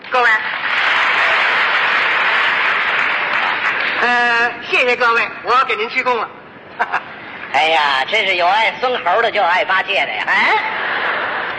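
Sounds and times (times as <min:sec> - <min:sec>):
audience applause at a Chinese comedy performance: 0:00.4 - 0:04.1
speech: 0:04.0 - 0:10.8.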